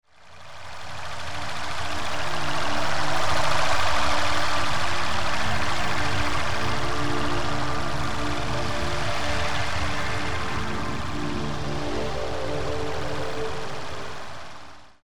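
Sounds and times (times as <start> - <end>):
ambient music: 0.9 - 15.0.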